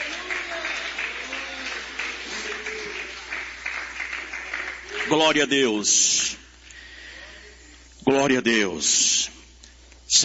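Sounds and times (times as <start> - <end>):
audience clapping in praise: 0.0 - 5.9
speech: 5.1 - 6.4, 8.1 - 9.1.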